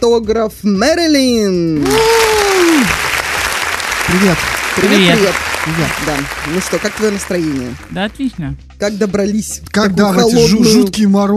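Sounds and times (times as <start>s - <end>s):
speech: 0.0s - 3.0s, 4.1s - 11.3s
loud dense applause: 1.8s - 8.0s.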